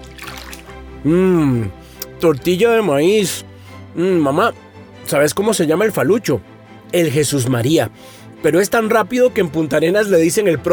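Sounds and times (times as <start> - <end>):
water poured from a clay jar: 0.0 - 0.9
speech: 1.0 - 10.7.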